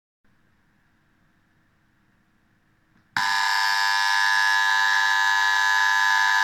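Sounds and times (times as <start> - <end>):
Tesla household doorbell buzzer: 3.2 - 6.4.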